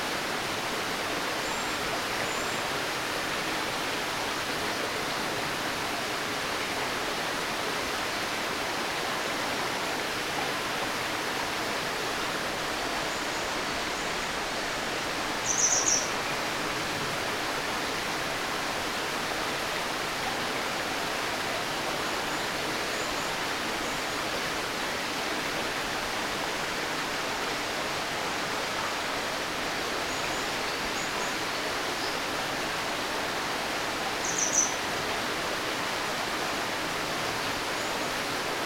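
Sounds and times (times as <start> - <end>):
river flowing: 0.0 - 38.6
bird calling: 15.4 - 16.2, 34.2 - 34.8.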